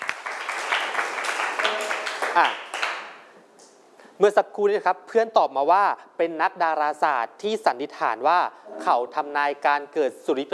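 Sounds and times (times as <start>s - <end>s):
audience applause: 0.0s - 3.2s
speech: 2.4s - 2.7s, 4.2s - 10.5s.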